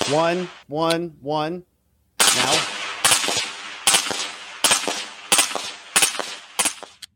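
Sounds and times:
semi-automatic firearm firing single rounds: 0:00.0 - 0:00.7, 0:02.2 - 0:07.0
speech: 0:00.1 - 0:01.7, 0:02.3 - 0:02.7.

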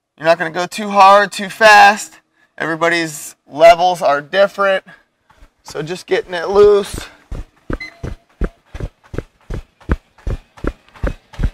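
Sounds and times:
speech: 0:00.2 - 0:05.0, 0:05.6 - 0:07.2
jogging footfalls on a running treadmill: 0:05.3 - 0:11.5.

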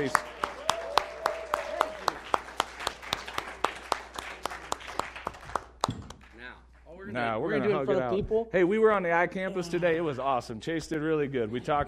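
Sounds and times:
speech: 0:00.0 - 0:00.3, 0:07.2 - 0:11.8
audience applauding as a pastor is welcomed to the stage: 0:00.0 - 0:06.4.

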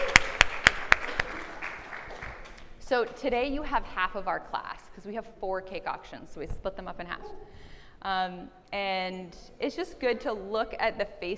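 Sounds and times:
hand clapping for people who signed up for a class: 0:00.0 - 0:03.2
speech: 0:02.9 - 0:11.3.

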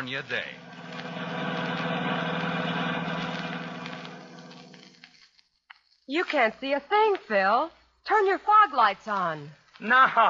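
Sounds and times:
car engine drone driving through the San Bernardino Valley: 0:00.0 - 0:05.2
speech: 0:00.1 - 0:01.1, 0:06.1 - 0:10.2.

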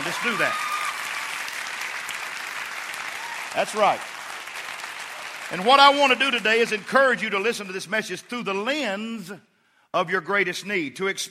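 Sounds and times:
crowd clapping: 0:00.0 - 0:08.7
speech: 0:00.1 - 0:00.7, 0:03.6 - 0:04.1, 0:05.5 - 0:11.2.

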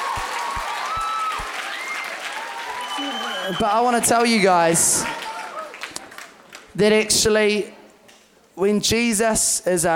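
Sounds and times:
crowd applauding: 0:00.0 - 0:06.8
speech: 0:03.0 - 0:05.3, 0:06.8 - 0:07.8, 0:08.6 - 0:09.9.

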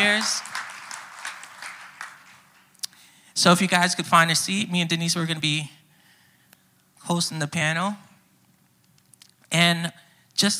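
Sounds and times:
audience applause: 0:00.0 - 0:02.6
speech: 0:00.2 - 0:00.5, 0:03.4 - 0:05.8, 0:07.0 - 0:08.1, 0:09.5 - 0:10.5.

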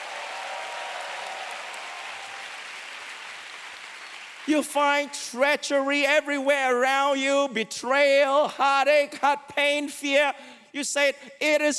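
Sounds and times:
audience clapping: 0:00.0 - 0:05.0
speech: 0:04.4 - 0:11.7.

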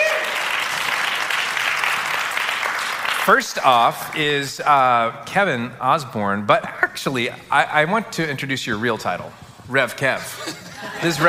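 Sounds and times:
audience applause welcoming guests on stage: 0:00.0 - 0:04.1
speech: 0:03.2 - 0:11.2
laughter: 0:10.2 - 0:11.2.

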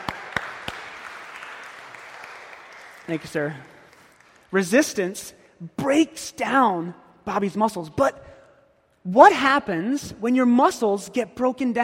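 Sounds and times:
audience applause: 0:00.0 - 0:04.5
speech: 0:03.1 - 0:03.8, 0:04.5 - 0:08.3, 0:09.0 - 0:11.8.

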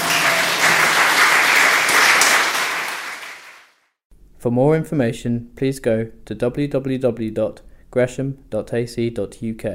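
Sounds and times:
large audience clapping after a lecture: 0:00.0 - 0:03.8
speech: 0:04.4 - 0:09.7.

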